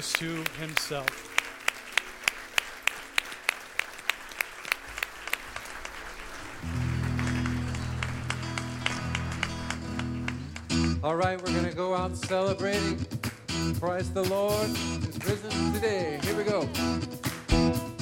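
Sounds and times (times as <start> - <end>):
speech: 0.0 - 1.4, 11.0 - 17.2
audience applause: 0.0 - 10.9.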